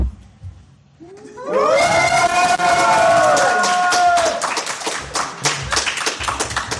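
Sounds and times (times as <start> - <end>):
small audience cheering yay: 1.4 - 4.6
small audience scattered clapping: 2.4 - 6.7.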